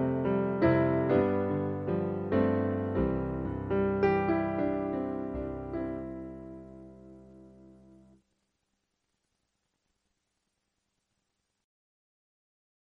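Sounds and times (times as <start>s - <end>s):
piano: 0.0s - 8.2s.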